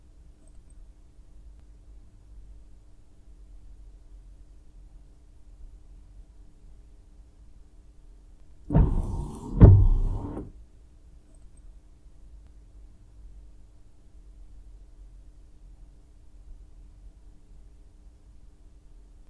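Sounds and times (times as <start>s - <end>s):
car windshield wipers: 8.7s - 10.5s.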